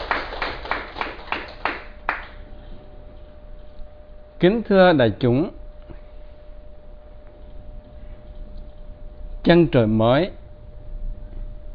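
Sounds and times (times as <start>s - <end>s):
slow hand claps at a Buddhist dharma talk: 0.0s - 2.4s
speech: 4.4s - 5.6s, 9.4s - 10.4s.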